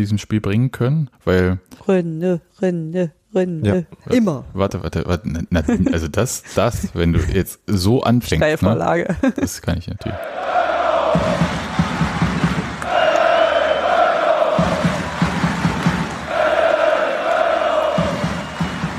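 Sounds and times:
speech: 0.0s - 11.6s
laughter: 5.5s - 7.4s
stadium crowd cheering after a goalkeeper save: 10.1s - 18.9s.

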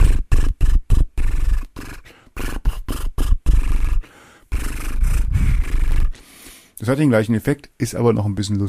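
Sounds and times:
horse-like lip trills following a tune: 0.0s - 6.2s
speech: 6.9s - 8.6s.

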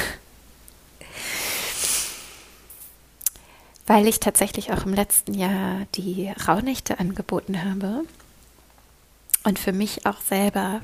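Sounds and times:
person taking a deep breath: 1.0s - 2.8s
speech: 3.9s - 8.2s, 9.4s - 10.8s.

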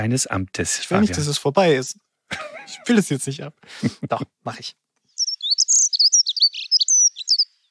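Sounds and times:
speech: 0.0s - 4.8s
laughter: 2.3s - 3.0s, 3.7s - 4.4s
bird song of the bird of the day: 5.0s - 7.6s.

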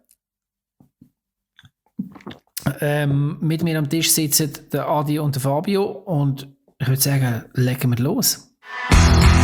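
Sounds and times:
someone taking a big sip of a drink: 1.6s - 3.2s
wet mouth sounds: 1.6s - 3.2s
speech: 2.8s - 9.3s.

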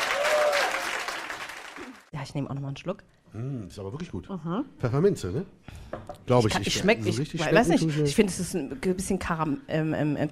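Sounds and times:
audience applause: 0.0s - 2.1s
speech: 2.2s - 10.3s.

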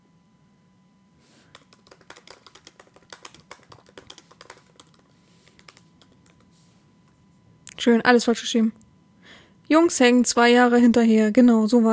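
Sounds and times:
typing a Google search query on a computer keyboard: 1.5s - 6.5s
speech: 7.8s - 8.8s, 9.7s - 11.9s.

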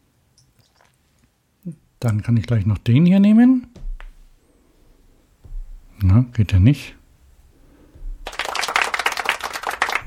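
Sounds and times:
speech: 1.6s - 3.8s, 6.2s - 7.0s
light, thin applause from a small group: 8.2s - 10.0s.

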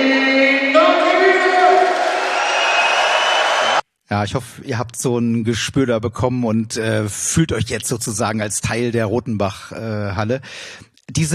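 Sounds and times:
stadium crowd cheering and chanting from opposite stand: 0.0s - 3.8s
speech: 4.1s - 11.3s.

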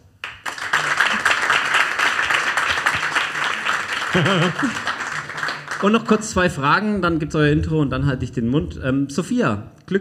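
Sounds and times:
audience applause: 0.2s - 6.3s
laughter: 3.0s - 5.4s
speech: 4.1s - 4.9s, 5.8s - 9.9s.

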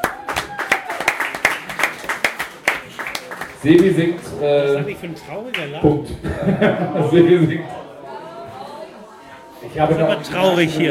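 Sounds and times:
audience applause: 0.0s - 4.3s
speech: 3.6s - 7.8s, 9.7s - 10.9s
laughter: 6.0s - 7.8s.

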